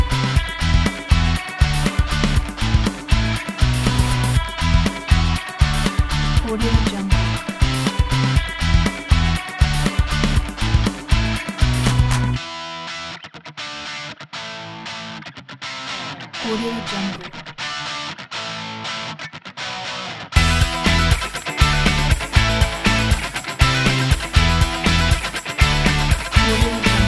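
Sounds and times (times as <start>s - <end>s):
positive upbeat rock music: 0.0s - 27.0s.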